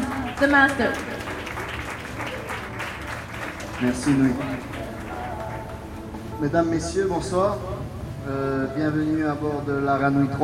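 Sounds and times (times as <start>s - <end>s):
audience applause for the crew aboard the Aranui in the Marquesas: 0.0s - 6.4s
speech: 0.4s - 1.1s, 3.8s - 4.8s, 6.4s - 10.4s.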